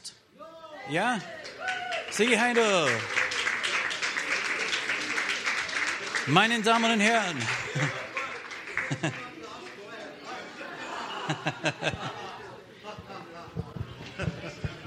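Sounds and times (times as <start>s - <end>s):
speech: 0.9s - 3.2s, 6.3s - 8.0s, 9.0s - 9.2s, 11.3s - 12.2s
applause: 1.1s - 10.2s
laughter: 3.6s - 14.8s.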